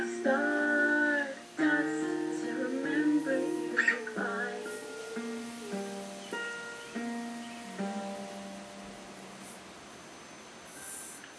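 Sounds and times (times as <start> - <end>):
person singing: 0.0 - 8.8.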